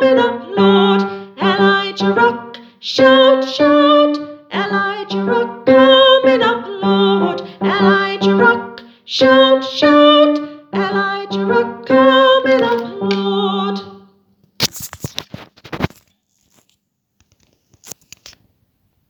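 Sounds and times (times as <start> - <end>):
tenor singing: 0.0 - 14.1.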